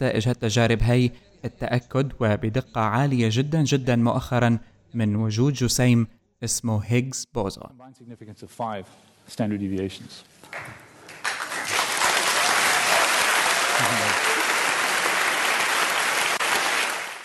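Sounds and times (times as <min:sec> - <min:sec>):
speech: 0:00.0 - 0:10.8, 0:13.8 - 0:14.2
audience applause at Higgs boson discovery announcement: 0:10.5 - 0:17.2.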